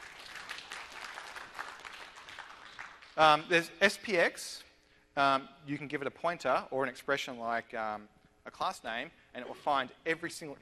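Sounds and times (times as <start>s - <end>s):
crowd applause: 0.0s - 3.2s
speech: 3.2s - 10.6s.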